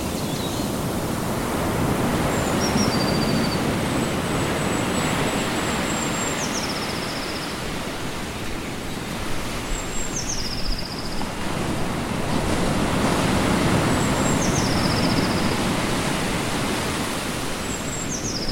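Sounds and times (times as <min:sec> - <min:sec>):
ocean: 0:00.0 - 0:18.5.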